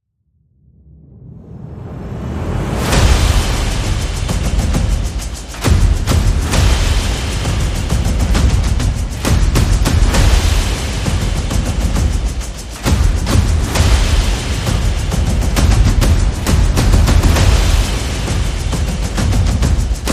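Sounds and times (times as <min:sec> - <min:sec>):
percussion: 0:01.4 - 0:20.1.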